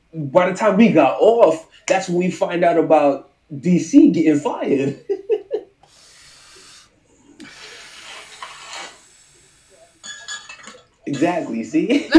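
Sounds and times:
speech: 0.1 - 5.2, 11.2 - 12.1
laughter: 4.7 - 5.8, 11.1 - 12.1
soft breathy sipping: 5.8 - 11.6
rustling: 6.1 - 11.1
glass cup clinking: 10.0 - 11.6.

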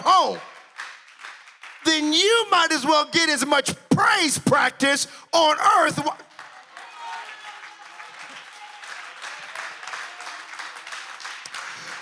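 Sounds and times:
speech: 0.2 - 0.5, 1.9 - 6.3
audience applause: 0.2 - 1.9, 6.3 - 12.0.

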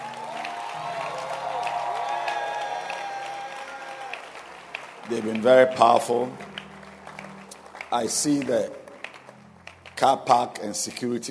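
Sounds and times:
cheering and whoops: 0.0 - 4.4
church congregation clapping for a girls' band: 0.0 - 11.2
speech: 5.1 - 6.5, 7.9 - 8.8, 10.0 - 11.2.

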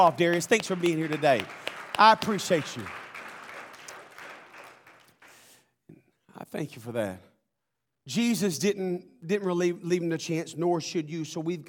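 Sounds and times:
speech: 0.0 - 3.0, 6.4 - 7.3, 8.0 - 11.6
audience clapping: 0.0 - 5.6.

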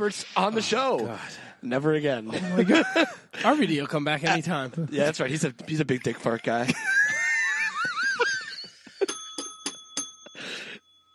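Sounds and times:
speech: 0.0 - 6.9
laughter: 2.2 - 9.1
bell ringing: 7.0 - 11.1.

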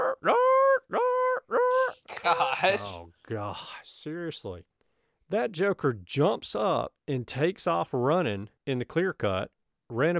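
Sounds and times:
person imitating yelping dog: 0.0 - 3.0
speech: 2.2 - 4.7, 5.3 - 10.1.

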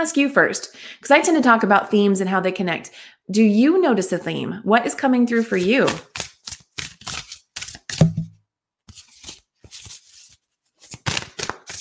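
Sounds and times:
speech: 0.0 - 6.2
thick cards being shuffled and flipped over: 5.4 - 8.3, 8.9 - 11.8.

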